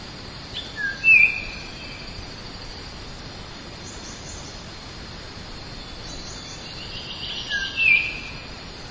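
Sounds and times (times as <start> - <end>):
Bornean oriole giving a brief whistled call: 0.5 - 2.0, 7.2 - 8.4.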